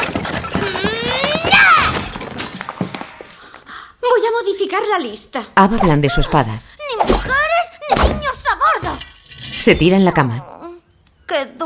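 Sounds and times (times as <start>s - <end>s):
bookshelf kicked over and crashing down: 0.0s - 3.0s
scattered smaller clatters: 0.0s - 3.4s
speech: 4.6s - 10.6s.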